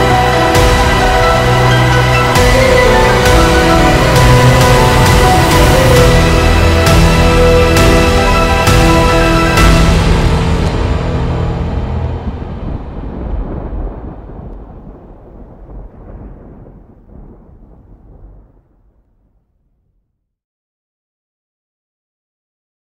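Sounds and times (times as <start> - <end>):
cinematic piano cover: 0.0 - 16.5.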